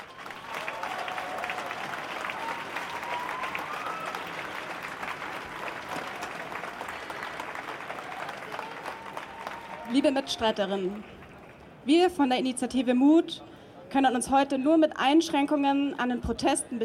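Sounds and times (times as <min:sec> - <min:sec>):
applause: 0:00.0 - 0:11.8
speech: 0:09.9 - 0:11.2, 0:11.9 - 0:16.8.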